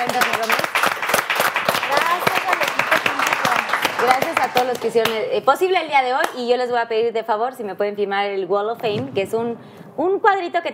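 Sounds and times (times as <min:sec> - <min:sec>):
audience applause: 0:00.0 - 0:05.1
speech: 0:04.0 - 0:10.7.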